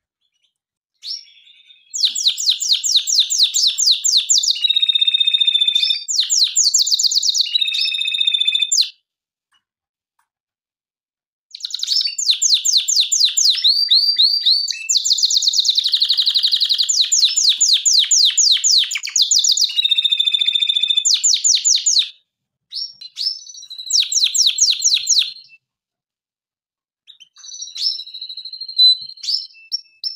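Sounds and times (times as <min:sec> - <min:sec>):
canary singing trills: 0:00.2 - 0:08.9, 0:11.5 - 0:25.6, 0:27.1 - 0:30.1.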